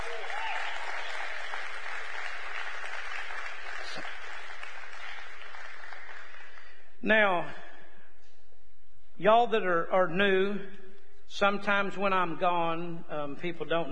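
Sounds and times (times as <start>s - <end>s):
audience clapping: 0.0s - 6.9s
speech: 7.0s - 7.6s, 9.2s - 13.9s.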